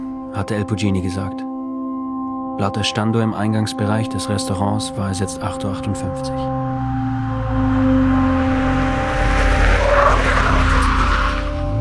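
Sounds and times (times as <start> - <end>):
speech: 0.4 - 1.5, 2.6 - 8.2
vehicle speeding past: 6.4 - 11.7.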